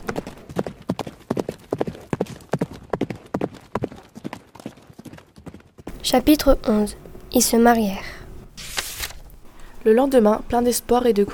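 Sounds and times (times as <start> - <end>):
horse hooves galloping from stables: 0.0 - 6.4
speech: 6.1 - 8.1, 9.8 - 11.3.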